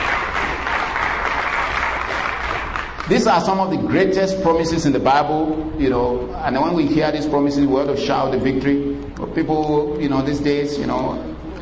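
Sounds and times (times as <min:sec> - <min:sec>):
congregation clapping hands at a church service: 0:00.0 - 0:03.6
speech: 0:03.1 - 0:11.3.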